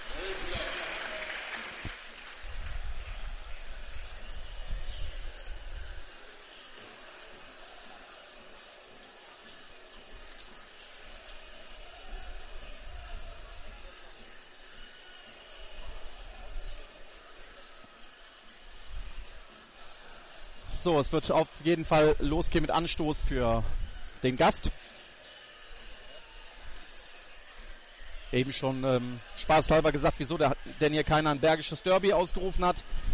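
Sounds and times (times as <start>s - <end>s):
football stadium crowd cheering and applauding: 0.0s - 4.6s
speech: 20.8s - 25.0s, 28.3s - 33.0s.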